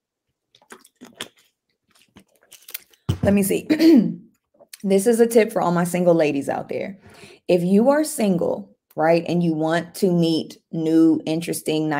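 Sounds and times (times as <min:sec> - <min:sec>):
person drinking water: 0:00.3 - 0:03.1
speech: 0:03.2 - 0:04.2, 0:04.8 - 0:11.9.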